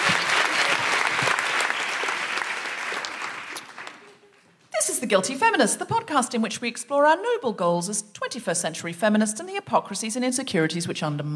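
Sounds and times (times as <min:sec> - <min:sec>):
crowd applauding: 0:00.0 - 0:04.5
speech: 0:05.1 - 0:11.3.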